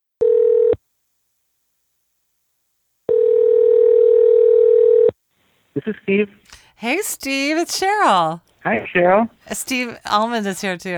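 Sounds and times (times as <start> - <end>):
telephone dial tone: 0.2 - 0.8, 3.1 - 5.2
speech: 5.8 - 10.9.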